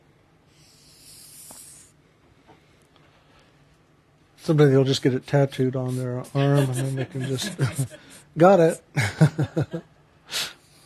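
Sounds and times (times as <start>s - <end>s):
marker scratching on board: 0.5s - 1.9s, 4.4s - 8.3s
speech: 4.5s - 9.9s
laughter: 6.3s - 8.2s, 9.0s - 9.9s.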